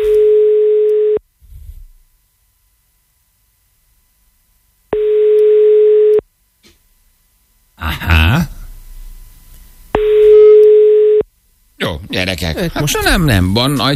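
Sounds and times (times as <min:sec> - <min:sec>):
telephone line tone while calling a radio listener: 0:00.0 - 0:01.2, 0:05.0 - 0:06.2, 0:10.0 - 0:11.3
speech: 0:12.1 - 0:13.9.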